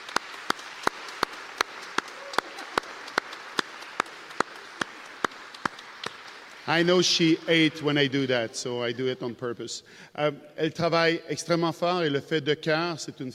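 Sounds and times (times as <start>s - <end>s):
sharp evenly spaced hand claps: 0.0s - 6.8s
crowd applause: 0.0s - 7.8s
speech: 6.7s - 13.3s.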